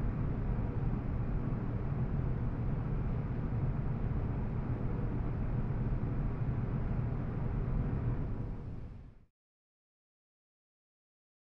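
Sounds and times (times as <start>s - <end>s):
air conditioner vent smooth low-range rush of air: 0.0s - 9.2s.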